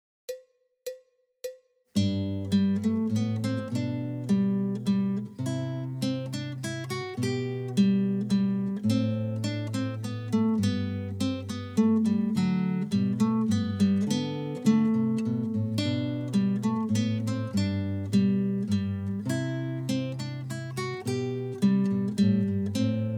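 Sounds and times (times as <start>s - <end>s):
guitar minuet: 2.0s - 23.1s.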